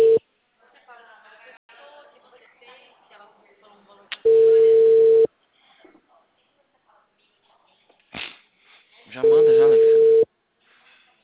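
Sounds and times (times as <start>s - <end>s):
telephone ringing tone on an unanswered call: 0.0s - 0.2s, 4.2s - 5.3s, 9.2s - 10.3s.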